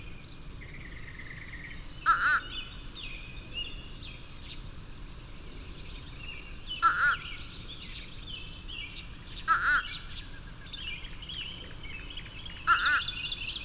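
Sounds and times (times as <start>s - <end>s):
bird warbling: 2.0s - 2.7s, 6.7s - 7.6s, 9.4s - 10.2s, 12.6s - 13.5s.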